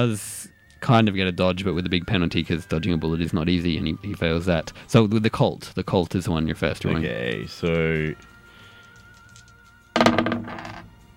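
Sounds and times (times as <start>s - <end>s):
speech: 0.0s - 8.3s
dice rolled during a tabletop role-playing game: 8.9s - 10.9s.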